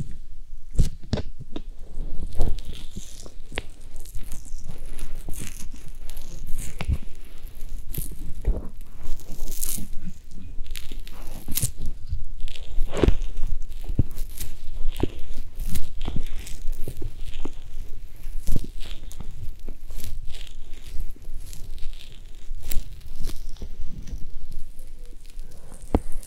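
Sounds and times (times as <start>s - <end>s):
ear massage rubbing and crinkling: 1.6s - 26.2s.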